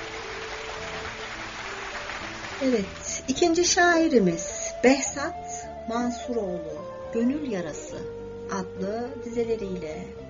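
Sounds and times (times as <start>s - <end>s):
audience applauding a poet after a reading: 0.0s - 3.3s
speech: 2.6s - 10.2s.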